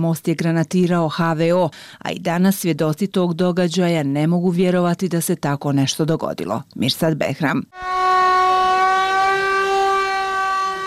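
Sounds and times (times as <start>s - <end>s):
speech: 0.0s - 8.0s
air-raid general danger warning siren in Mostar: 7.7s - 10.8s.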